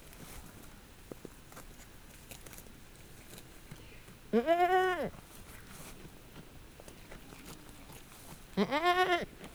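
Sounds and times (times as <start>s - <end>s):
domestic goat in a farmyard: 4.3s - 5.1s, 8.5s - 9.4s.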